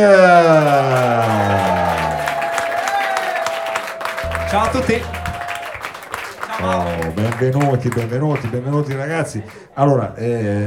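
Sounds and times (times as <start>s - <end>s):
speech: 0.0s - 1.3s, 4.5s - 5.2s, 6.6s - 10.6s
person whooping: 0.0s - 5.8s
audience applause: 0.4s - 9.7s.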